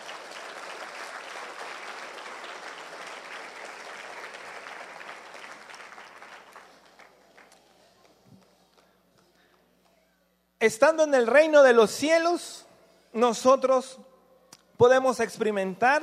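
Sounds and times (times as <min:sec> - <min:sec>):
audience applauding: 0:00.0 - 0:08.2
speech: 0:10.6 - 0:12.6, 0:13.2 - 0:14.0, 0:14.8 - 0:16.0.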